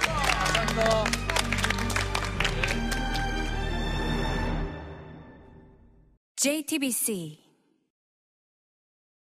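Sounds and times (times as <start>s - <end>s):
studio audience applause: 0.0s - 4.2s
speech: 6.4s - 7.4s.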